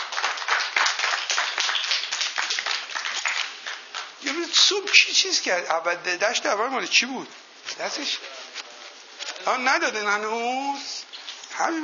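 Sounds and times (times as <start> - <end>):
audience applause: 0.0 - 4.2
speech: 4.5 - 8.4, 9.4 - 11.8.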